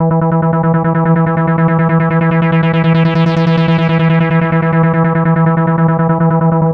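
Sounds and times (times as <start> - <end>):
drum and bass synth at 145 BPM: 0.2 - 6.7.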